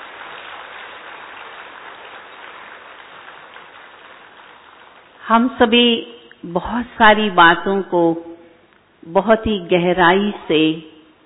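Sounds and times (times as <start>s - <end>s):
crowd applauding: 0.0s - 5.2s
speech: 5.3s - 8.3s, 9.0s - 10.9s.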